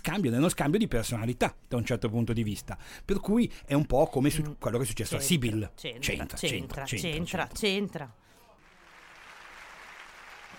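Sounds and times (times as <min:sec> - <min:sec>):
speech: 0:00.1 - 0:08.2
crowd applauding: 0:08.6 - 0:10.5.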